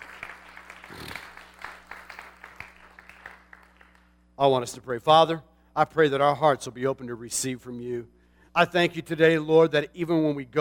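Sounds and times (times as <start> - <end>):
audience clapping: 0.0 - 4.2
speech: 4.4 - 10.5.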